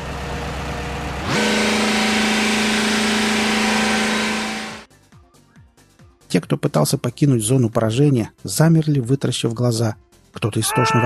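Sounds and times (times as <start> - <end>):
diesel engine roaring: 0.0 - 4.9
speech: 6.3 - 11.0.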